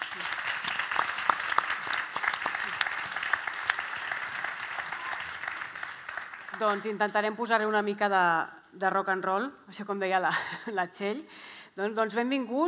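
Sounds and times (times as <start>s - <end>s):
audience applause: 0.0s - 7.0s
speech: 6.6s - 12.6s.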